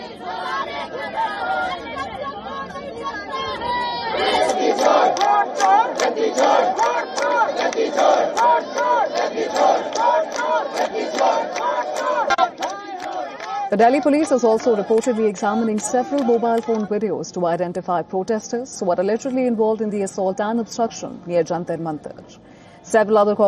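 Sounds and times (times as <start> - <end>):
opposition leaders raising slogans: 0.0 - 17.1
speech: 5.1 - 12.3, 13.7 - 23.4.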